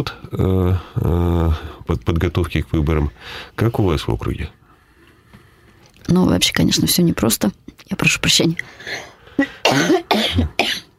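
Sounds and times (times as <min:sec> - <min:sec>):
speech: 0:00.0 - 0:04.6, 0:06.1 - 0:10.6
man with a chill coughing: 0:09.4 - 0:10.9.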